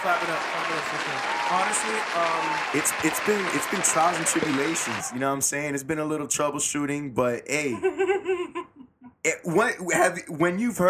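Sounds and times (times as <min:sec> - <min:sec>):
crowd applause: 0:00.0 - 0:05.4
speech: 0:00.0 - 0:08.5, 0:09.2 - 0:10.8.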